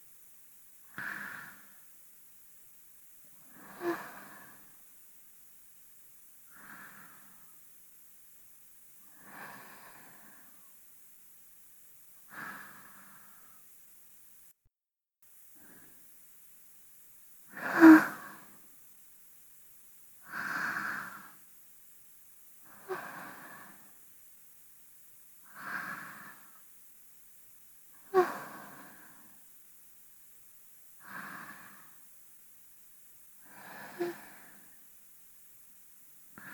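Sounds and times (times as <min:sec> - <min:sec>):
person breathing in sleep, binaural: 0:00.9 - 0:02.0, 0:03.4 - 0:04.9, 0:06.4 - 0:07.7, 0:09.0 - 0:10.8, 0:12.2 - 0:13.8, 0:15.5 - 0:16.1, 0:17.4 - 0:18.7, 0:20.2 - 0:21.5, 0:22.6 - 0:24.0, 0:25.4 - 0:26.7, 0:27.9 - 0:29.5, 0:31.0 - 0:32.1, 0:33.4 - 0:35.0, 0:36.3 - 0:36.5.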